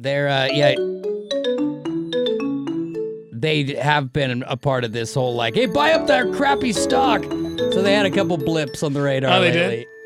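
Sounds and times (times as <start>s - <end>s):
speech: 0.0s - 1.7s, 3.4s - 9.9s
phone ringtone: 0.5s - 3.3s, 5.5s - 10.0s.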